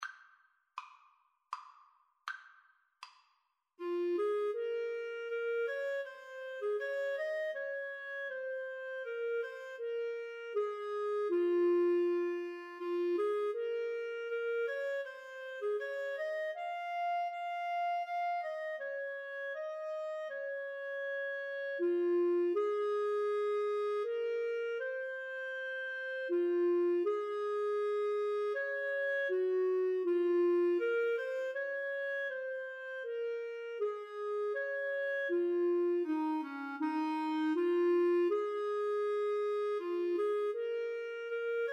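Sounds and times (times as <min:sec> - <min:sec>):
clarinet duet: 0:03.8 - 0:41.7.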